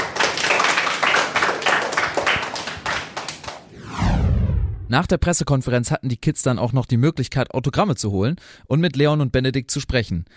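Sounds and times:
hand clapping from two athletes: 0:00.0 - 0:03.6
speech: 0:04.9 - 0:10.3.

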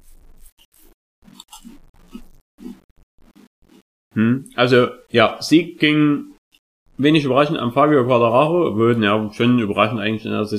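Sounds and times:
crunchy biting and chewing of a Teigring pastry: 0:00.7 - 0:03.8
speech: 0:04.2 - 0:06.3, 0:07.0 - 0:10.5.

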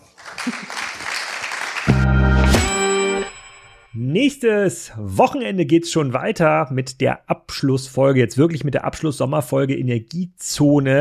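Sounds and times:
applause: 0:00.0 - 0:02.9
speech: 0:00.5 - 0:00.8, 0:04.1 - 0:10.9.

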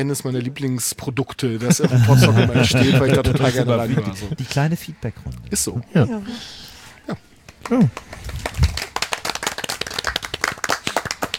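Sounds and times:
speech: 0:00.0 - 0:08.1
laughter: 0:01.6 - 0:04.6
audience applause: 0:07.5 - 0:11.3.

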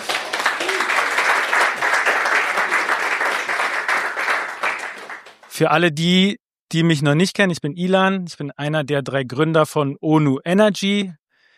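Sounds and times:
audience clapping: 0:00.0 - 0:05.7
speech: 0:05.6 - 0:11.2.

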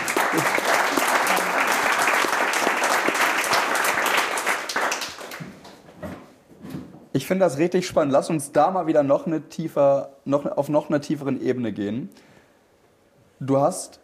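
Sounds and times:
applause: 0:00.0 - 0:05.8
speech: 0:07.2 - 0:12.3, 0:13.4 - 0:14.0.

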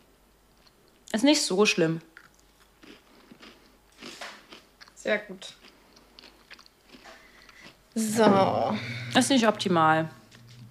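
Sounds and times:
speech: 0:01.2 - 0:02.1, 0:05.1 - 0:05.6, 0:08.0 - 0:10.2
biting and chewing a crunchy slightly burnt homemade Christmas cookie: 0:02.2 - 0:08.0.

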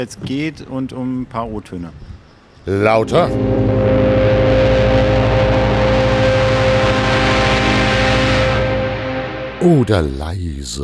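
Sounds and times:
speech: 0:00.0 - 0:04.4, 0:09.6 - 0:10.8
car horns honking on a main street: 0:02.9 - 0:09.5.

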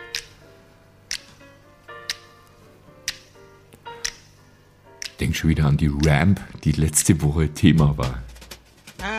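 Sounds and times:
soft sustained instrumental music: 0:00.0 - 0:09.1
crisp finger snaps in a song: 0:00.1 - 0:00.4, 0:01.1 - 0:01.3, 0:03.1 - 0:03.4, 0:04.0 - 0:04.3, 0:05.0 - 0:05.2
speech: 0:05.2 - 0:08.3.

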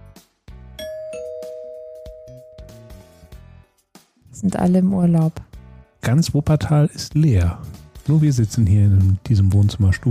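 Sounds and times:
two-tone doorbell chime: 0:00.8 - 0:03.3
speech: 0:04.4 - 0:10.1.

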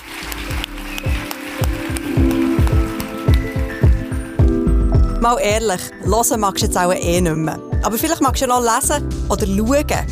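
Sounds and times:
audience applause: 0:00.0 - 0:04.5
speech: 0:05.2 - 0:10.1.

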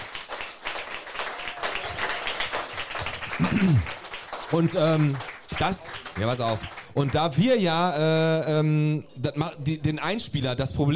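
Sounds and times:
applause: 0:00.0 - 0:07.5
speech: 0:03.4 - 0:10.9.

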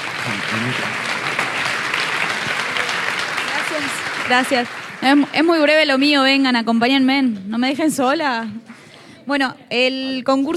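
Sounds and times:
crowd applause: 0:00.0 - 0:06.2
speech: 0:00.3 - 0:01.1, 0:03.8 - 0:08.7, 0:09.3 - 0:10.5.

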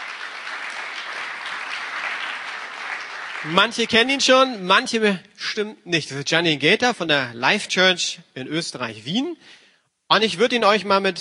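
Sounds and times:
audience applause: 0:00.0 - 0:04.4
speech: 0:03.4 - 0:11.1.

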